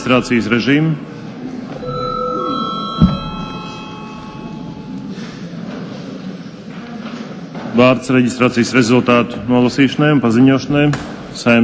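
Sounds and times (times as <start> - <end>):
speech: 0.0 - 1.1, 7.8 - 11.6
parliament session bell ringing: 1.8 - 5.6.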